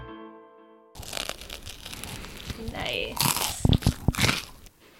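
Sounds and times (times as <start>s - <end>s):
ASMR biting and crunchy chewing: 1.0s - 4.8s.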